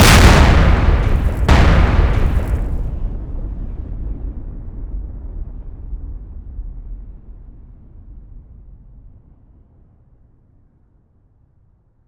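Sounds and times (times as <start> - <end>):
explosion: 0.0 - 3.9.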